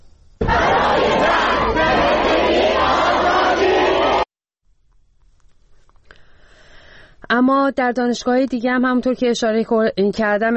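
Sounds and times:
students chanting slogans at a university protest rally in Qom: 0.4s - 4.3s
speech: 7.4s - 10.5s.

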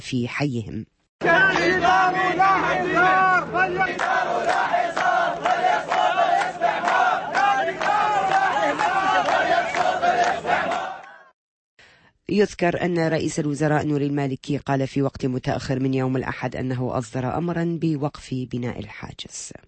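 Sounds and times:
speech: 0.0s - 4.7s, 12.3s - 19.6s
large crowd of protesters chanting and shouting: 1.2s - 11.3s.

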